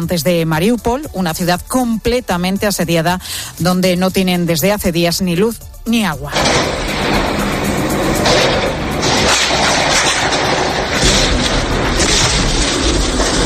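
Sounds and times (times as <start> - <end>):
speech: 0.0 - 6.9
bombing attacks in Mariupol: 6.3 - 13.4.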